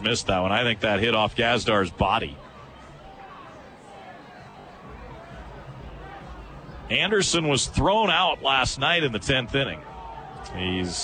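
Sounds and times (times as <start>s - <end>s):
speech: 0.0s - 2.5s, 6.9s - 11.0s
stadium crowd murmuring: 0.0s - 11.0s.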